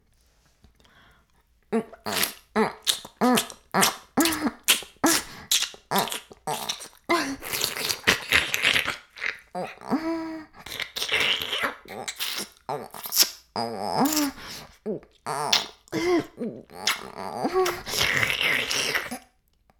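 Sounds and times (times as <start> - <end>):
oral sex sounds: 1.7 - 19.3.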